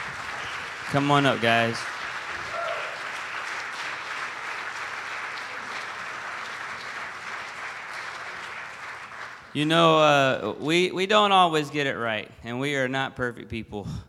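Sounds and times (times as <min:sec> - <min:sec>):
audience clapping: 0:00.0 - 0:10.2
speech: 0:00.9 - 0:01.9, 0:09.5 - 0:14.0.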